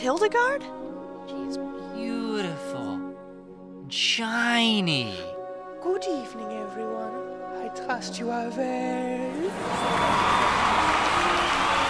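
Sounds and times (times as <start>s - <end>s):
speech: 0.0s - 2.9s, 3.9s - 10.6s
lively crowd cheering and applauding: 9.3s - 11.8s.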